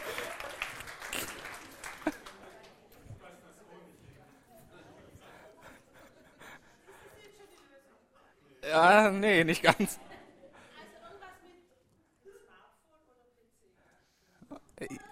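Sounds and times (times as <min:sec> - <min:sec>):
laughter: 0:00.0 - 0:02.7, 0:04.8 - 0:07.5, 0:09.4 - 0:11.2
audience applause: 0:00.0 - 0:02.8
speech: 0:08.8 - 0:10.1.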